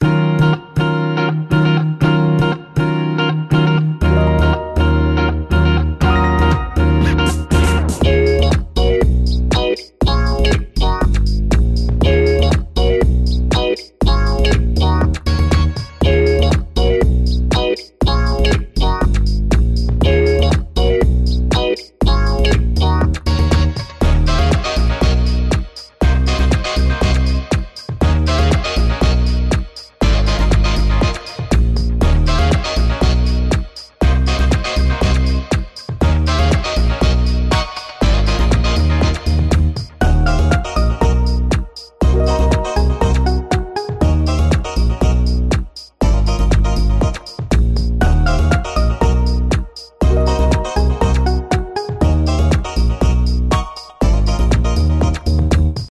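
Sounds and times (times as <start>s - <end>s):
smooth jazzy theme music: 0.0s - 55.8s.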